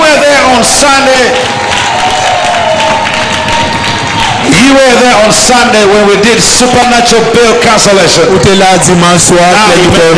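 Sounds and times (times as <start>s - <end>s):
large crowd applauding and cheering: 0.0s - 7.7s
whoops and shouts: 1.4s - 5.0s
speech: 4.7s - 10.1s.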